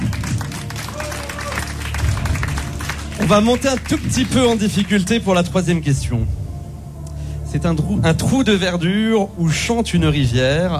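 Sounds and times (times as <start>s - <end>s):
audience applause: 0.0s - 5.1s
speech: 3.2s - 6.4s, 7.5s - 10.7s.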